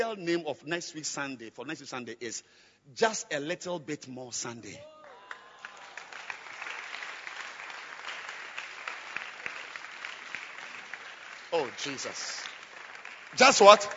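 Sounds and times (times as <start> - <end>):
speech: 0.1 - 4.9, 11.5 - 12.5, 13.3 - 13.9
crowd clapping: 4.8 - 13.9.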